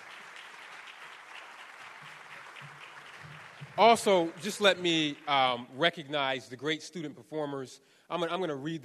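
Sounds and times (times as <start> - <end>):
audience applause: 0.0 - 5.8
speech: 3.8 - 8.8.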